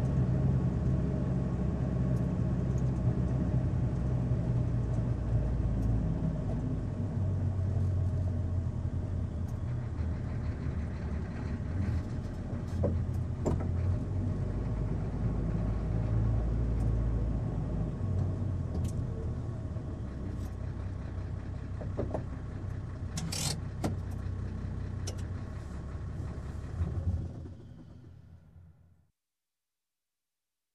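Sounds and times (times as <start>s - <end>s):
truck driving heard from the cockpit: 0.0s - 28.9s
truck engine starting: 5.1s - 29.0s.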